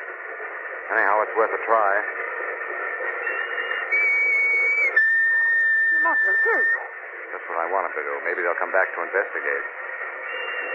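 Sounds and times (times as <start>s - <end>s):
speech: 0.9s - 2.3s, 6.0s - 9.8s
whistle being blown: 3.2s - 7.0s, 10.3s - 10.7s.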